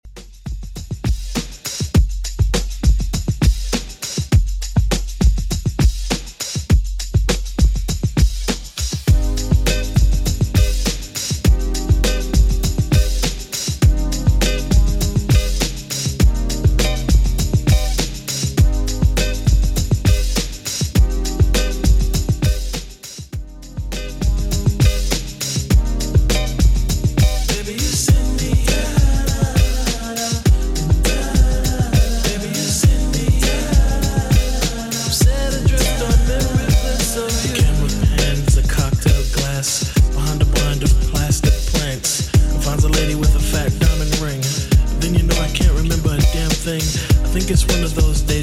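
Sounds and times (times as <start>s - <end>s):
90s drum loop: 0.0s - 48.4s.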